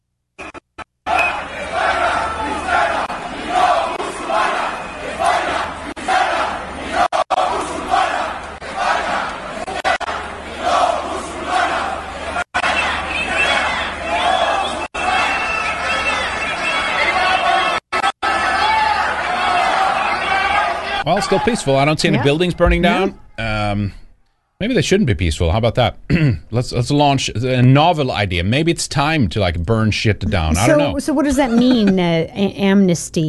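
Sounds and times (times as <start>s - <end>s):
protest crowd chanting: 1.1s - 23.2s, 30.3s - 31.9s
speech: 21.3s - 24.0s, 24.6s - 33.2s
laughter: 27.5s - 28.0s, 30.2s - 32.3s.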